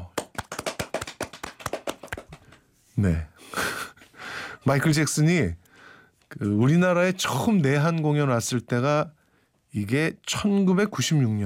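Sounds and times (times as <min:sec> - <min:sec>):
hands clapping: 0:00.0 - 0:02.7
speech: 0:03.0 - 0:03.7, 0:04.6 - 0:05.6, 0:06.3 - 0:11.4.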